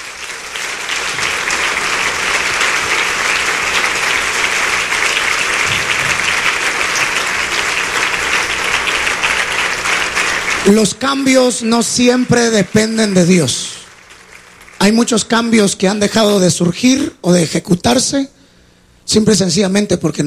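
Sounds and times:
audience applause: 0.0 - 15.5
speech: 10.7 - 13.8, 14.8 - 18.4, 19.1 - 20.2.

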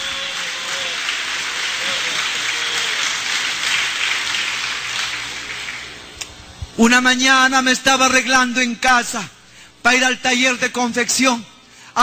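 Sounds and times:
audience applause: 0.0 - 6.0
speech: 6.8 - 12.0.

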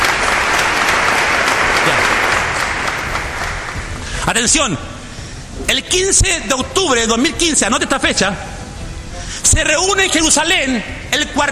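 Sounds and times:
audience applause: 0.0 - 4.1
speech: 4.3 - 5.0, 5.7 - 8.6, 9.4 - 11.5.

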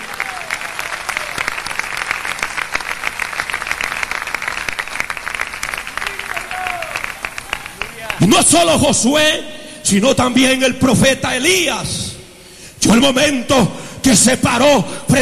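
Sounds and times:
audience applauding: 0.0 - 8.3
speech: 8.2 - 12.0, 12.8 - 15.2.

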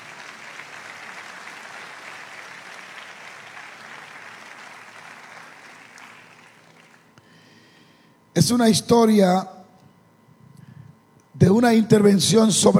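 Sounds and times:
audience applause: 0.0 - 7.1
speech: 8.4 - 9.6, 11.6 - 12.7.

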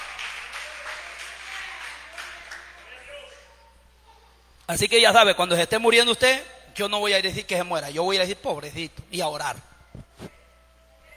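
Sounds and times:
audience applause: 0.0 - 3.4
speech: 4.7 - 10.4.

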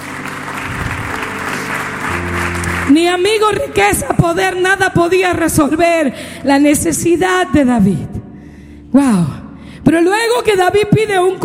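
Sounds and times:
congregation clapping at a church service: 0.0 - 3.8
sustained music: 0.0 - 5.8
speech: 2.9 - 8.1, 8.9 - 11.4.

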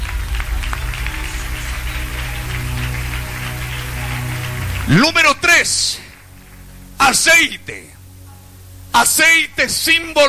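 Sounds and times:
audience clapping hands: 0.0 - 7.3
speech: 4.9 - 6.0, 7.1 - 8.0, 9.0 - 10.2.

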